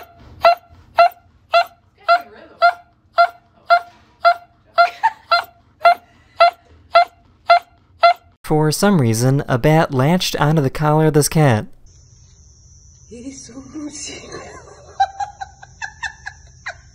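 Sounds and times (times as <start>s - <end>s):
dog wailing while waking up from surgery: 0.0s - 8.4s
laughter: 4.6s - 6.6s, 14.0s - 16.9s
speech: 8.5s - 11.8s.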